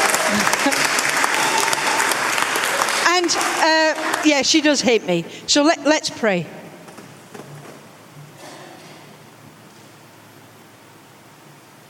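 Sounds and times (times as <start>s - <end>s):
audience applause: 0.0s - 4.5s
speech: 3.2s - 6.6s.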